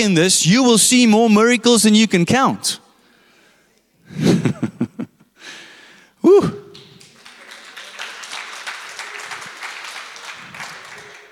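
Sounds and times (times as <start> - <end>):
speech: 0.0 - 2.8
audience clapping: 6.7 - 11.3.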